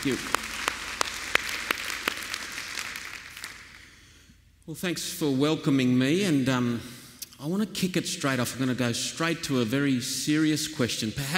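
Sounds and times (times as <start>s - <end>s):
speech: 0.0s - 0.4s, 4.7s - 11.3s
audience applauding the band: 0.0s - 4.0s.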